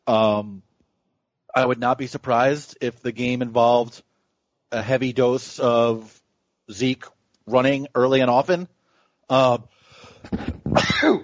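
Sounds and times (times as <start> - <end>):
speech: 0.1 - 0.6, 1.6 - 4.1, 4.7 - 11.2
person sneezing: 10.3 - 11.2.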